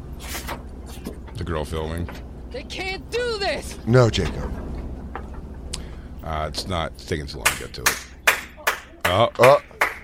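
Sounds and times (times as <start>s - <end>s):
speech: 1.4s - 4.7s, 6.2s - 8.1s, 9.1s - 9.7s
sharp hand claps: 7.4s - 10.0s.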